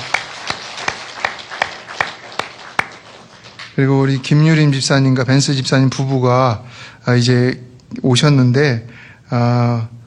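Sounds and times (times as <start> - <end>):
audience applause: 0.0 - 4.4
speech: 3.8 - 10.0.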